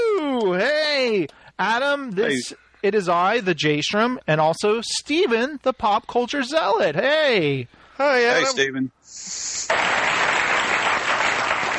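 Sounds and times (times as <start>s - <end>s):
speech: 1.1s - 10.8s
applause: 9.7s - 11.7s.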